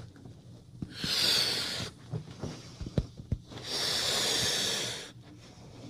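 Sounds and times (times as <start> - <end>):
woman blowing up a balloon: 0.9 - 2.0, 3.6 - 5.1.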